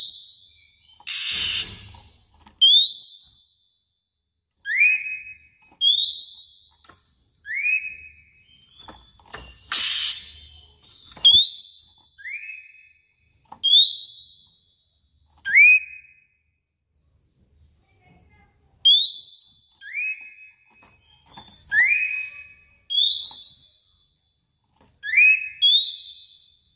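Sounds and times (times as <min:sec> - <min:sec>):
Oriental magpie-robin singing clear high whistled notes: 0:00.0 - 0:02.0, 0:02.6 - 0:04.0, 0:04.6 - 0:16.4, 0:18.8 - 0:24.4, 0:25.0 - 0:26.7.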